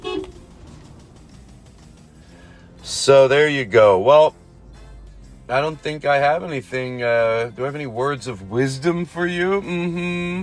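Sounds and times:
car horn beep: 0:00.0 - 0:00.6
engine or road noise rumble: 0:00.0 - 0:10.4
speech: 0:03.1 - 0:04.4, 0:05.5 - 0:10.4.

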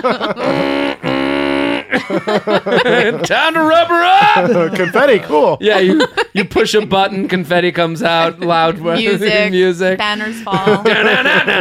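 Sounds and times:
speech: 0:00.0 - 0:01.2, 0:01.9 - 0:11.5
laughter: 0:00.0 - 0:11.5
voice imitating an air horn: 0:00.4 - 0:02.0.

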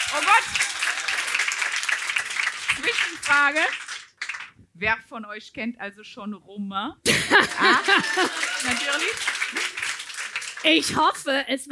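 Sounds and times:
live audience clapping: 0:00.0 - 0:04.6, 0:07.2 - 0:11.3
speech: 0:00.1 - 0:01.2, 0:02.8 - 0:03.9, 0:04.8 - 0:09.7, 0:10.6 - 0:11.7
laughter: 0:07.1 - 0:10.0.

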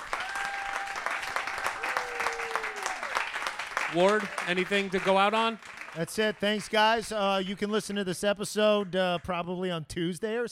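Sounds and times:
live audience applause: 0:00.0 - 0:07.6
speech: 0:03.9 - 0:10.4.

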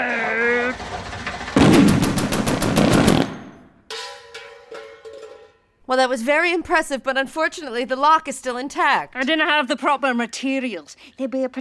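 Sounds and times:
rapid-fire fart blast: 0:01.6 - 0:03.6
speech: 0:05.9 - 0:11.5.

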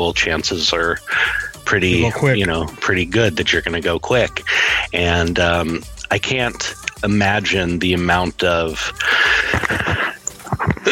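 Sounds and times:
speech: 0:00.0 - 0:10.9
person sneezing: 0:09.2 - 0:10.9.

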